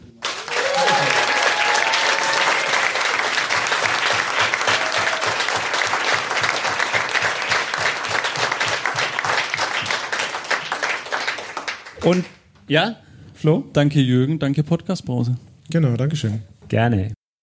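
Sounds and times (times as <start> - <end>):
live audience applause: 0.1 - 12.3
audience cheers and whistles: 0.5 - 3.1, 4.6 - 5.6
speech: 12.1 - 17.2.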